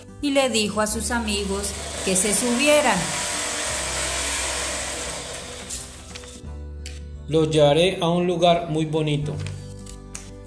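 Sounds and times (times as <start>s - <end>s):
speech: 0.2s - 3.2s, 7.3s - 9.5s
old motorbike engine running: 1.2s - 6.4s.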